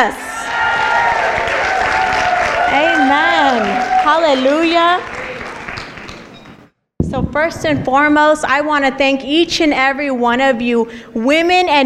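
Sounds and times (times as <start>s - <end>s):
speech: 0.0s - 0.3s, 3.1s - 5.1s, 7.1s - 11.8s
crowd applauding: 0.3s - 6.7s.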